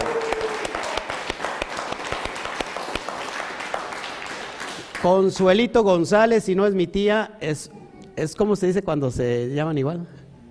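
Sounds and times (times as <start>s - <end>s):
applause: 0.0s - 5.6s
speech: 5.0s - 10.4s.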